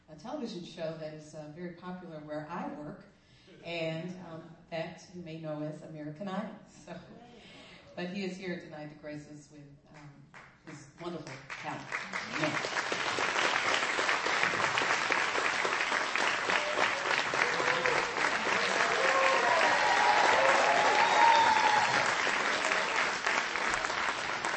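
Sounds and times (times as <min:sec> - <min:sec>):
speech: 0:00.2 - 0:07.3, 0:08.0 - 0:13.3
audience applause: 0:11.9 - 0:24.5
faint cheering: 0:16.1 - 0:24.5.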